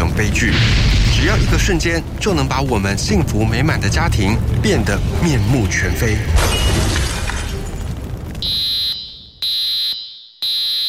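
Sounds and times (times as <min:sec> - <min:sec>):
speech: 0:00.2 - 0:07.0
residential fire alarm sounding: 0:08.4 - 0:10.8.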